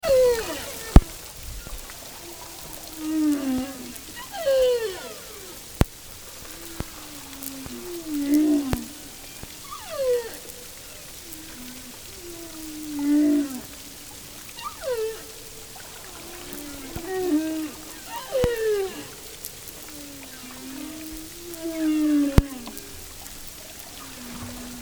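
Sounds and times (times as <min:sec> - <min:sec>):
humpback whale song: 0:00.0 - 0:24.8.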